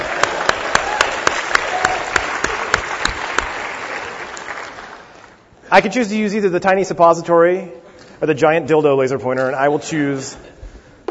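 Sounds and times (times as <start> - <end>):
audience round of applause: 0.0 - 5.4
speech: 5.7 - 10.6.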